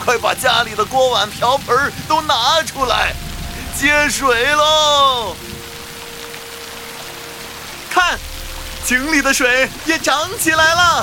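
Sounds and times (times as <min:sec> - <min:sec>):
steady rain falling: 0:00.0 - 0:11.0
speech: 0:00.1 - 0:03.2, 0:03.8 - 0:05.6, 0:08.0 - 0:08.3, 0:08.9 - 0:11.0.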